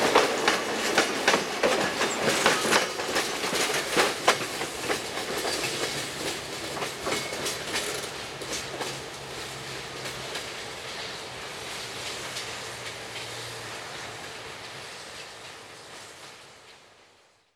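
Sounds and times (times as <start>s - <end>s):
wheels clattering over rail joints: 0.1s - 10.6s.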